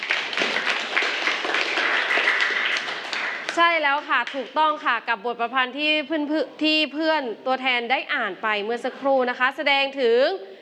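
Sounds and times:
students clapping for a classmate: 0.0 - 4.5
speech: 3.6 - 10.5.

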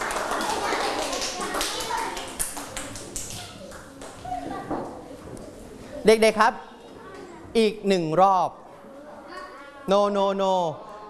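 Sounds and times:
children clapping hands for a classmate: 0.0 - 4.3
speech: 6.0 - 6.7, 7.6 - 8.6, 9.9 - 10.9.

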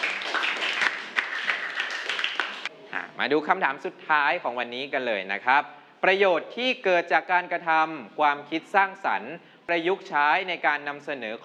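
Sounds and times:
applause for a classmate: 0.0 - 2.7
speech: 3.2 - 11.4.

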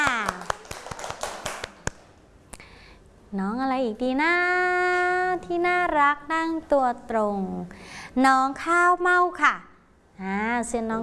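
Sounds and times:
children clapping hands: 0.0 - 2.1
speech: 3.3 - 11.0.

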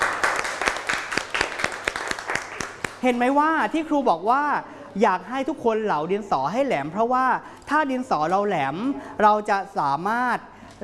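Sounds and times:
classroom applause for a pupil: 0.0 - 3.0
speech: 3.0 - 10.8.

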